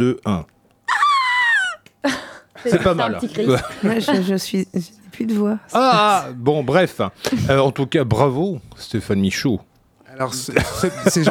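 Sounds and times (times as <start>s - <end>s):
speech: 0.0s - 0.5s, 2.0s - 11.2s
voice imitating hysterical female fan screams: 0.9s - 1.9s
laughter: 0.9s - 4.4s, 10.3s - 11.2s.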